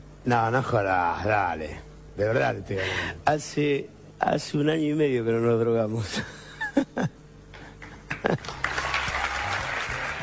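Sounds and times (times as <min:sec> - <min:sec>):
speech: 0:00.2 - 0:06.4
audience applause from the stands: 0:08.1 - 0:10.2.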